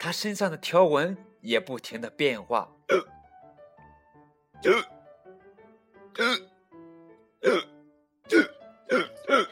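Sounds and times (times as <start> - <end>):
speech: 0.0 - 3.1, 4.6 - 5.0, 6.2 - 6.5, 7.4 - 7.7, 8.3 - 9.5
voice imitating hiccups: 2.9 - 3.1, 4.6 - 5.0, 6.2 - 6.5, 7.4 - 7.7, 8.3 - 9.5.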